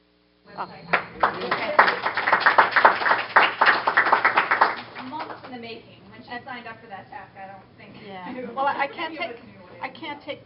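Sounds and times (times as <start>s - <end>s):
speech: 0.6s - 2.4s, 5.5s - 10.4s
round of applause: 0.9s - 5.5s.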